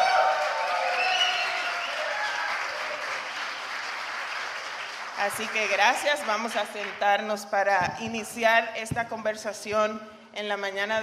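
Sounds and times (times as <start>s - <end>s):
audience applause: 0.0s - 6.8s
speech: 5.2s - 11.0s.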